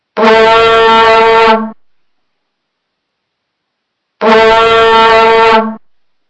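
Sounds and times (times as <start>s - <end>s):
vuvuzela blowing: 0.2s - 1.8s, 4.2s - 5.9s.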